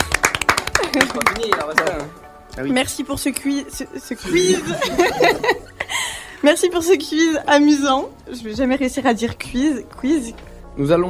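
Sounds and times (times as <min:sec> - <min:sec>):
studio guests clapping: 0:00.0 - 0:02.3
speech: 0:01.0 - 0:05.6, 0:06.4 - 0:11.0
voices and laughter: 0:04.2 - 0:05.9.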